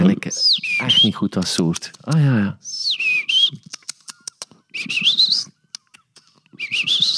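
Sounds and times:
Blyth's reed warbler singing: 0.0 - 7.1
speech: 0.3 - 2.8, 3.5 - 3.8
Blyth's reed warbler clicks and ticking notes: 0.9 - 2.4, 3.2 - 6.9.

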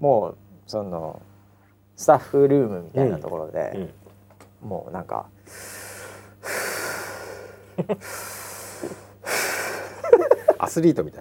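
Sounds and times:
speech: 0.0 - 1.3, 2.0 - 4.0, 4.6 - 5.8, 7.8 - 9.4, 10.6 - 11.1
person breathing heavily like hyperventilation in a staff room: 5.4 - 10.0
laughter: 7.7 - 8.1, 9.9 - 10.7.

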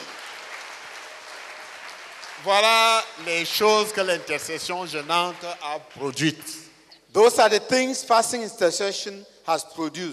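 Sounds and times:
audience clapping applause: 0.0 - 6.2
speech: 2.4 - 10.1.

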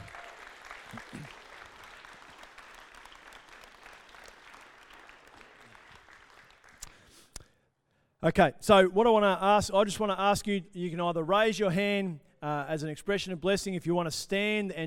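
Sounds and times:
audience applause: 0.0 - 6.9
speech: 8.2 - 14.8.

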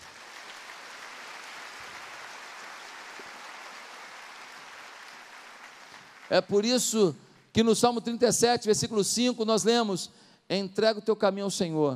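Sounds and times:
audience applause: 0.0 - 6.6
speech: 6.3 - 11.9.

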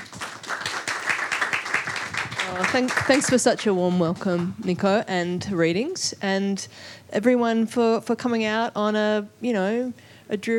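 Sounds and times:
audience applause: 0.0 - 3.8
speech: 2.5 - 10.5.

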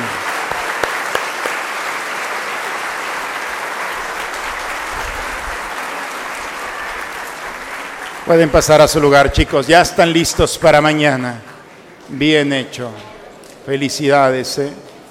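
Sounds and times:
crowd applause for the students: 0.0 - 11.8
speech: 8.3 - 11.5, 12.1 - 14.9.

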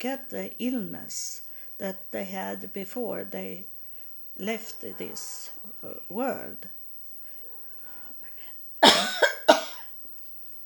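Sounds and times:
speech: 0.0 - 3.7, 4.4 - 6.8
harsh raspy coughs: 8.8 - 9.9.

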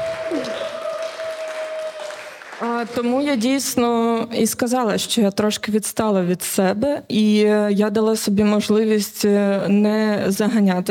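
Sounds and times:
audience applause: 0.0 - 3.1
speech: 2.6 - 10.8.

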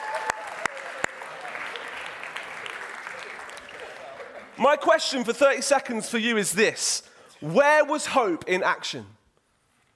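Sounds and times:
audience round of applause: 0.0 - 4.6
speech: 4.6 - 9.2.

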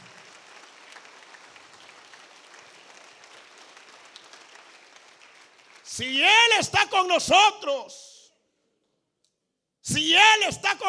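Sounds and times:
audience clapping: 0.0 - 6.2
speech: 5.9 - 8.1, 9.9 - 10.8.

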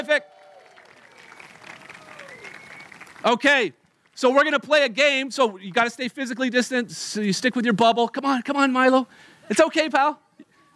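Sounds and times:
speech: 0.0 - 0.3, 3.2 - 10.2
audience applause: 0.0 - 3.4.

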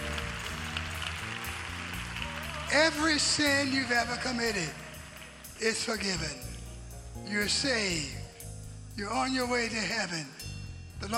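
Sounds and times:
crowd clapping: 0.0 - 6.4
speech: 2.7 - 4.8, 5.6 - 6.5, 7.2 - 8.2, 9.0 - 10.4, 11.0 - 11.1.

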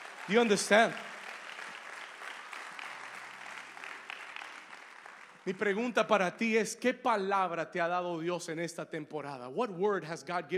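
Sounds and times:
audience applause: 0.0 - 5.9
speech: 0.3 - 1.1, 5.5 - 10.5.

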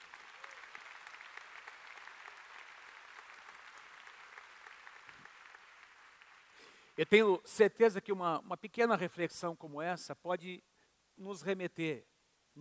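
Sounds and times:
audience applause: 0.0 - 6.6
speech: 7.0 - 12.6.

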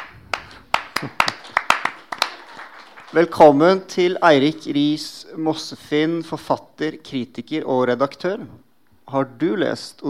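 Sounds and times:
crowd audience applause: 0.0 - 3.4
speech: 1.0 - 1.4, 3.1 - 10.0.

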